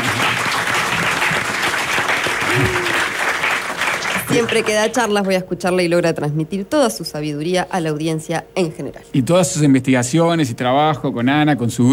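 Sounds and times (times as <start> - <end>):
audience applause: 0.0 - 5.0
speech: 4.4 - 11.9.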